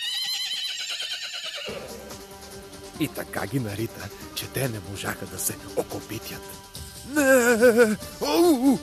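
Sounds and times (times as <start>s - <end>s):
horse whinnying in a barn: 0.0s - 2.2s
speech: 3.0s - 8.8s.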